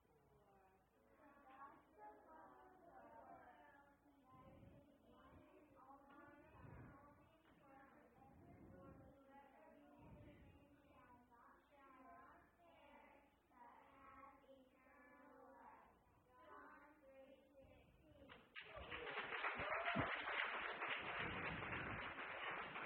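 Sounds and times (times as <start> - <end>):
audience applauding children: 18.6 - 22.8.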